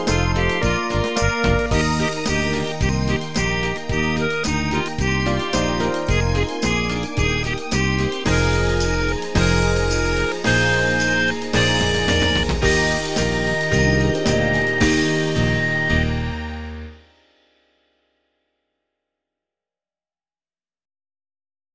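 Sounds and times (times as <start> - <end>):
jingle: 0.0 - 17.1.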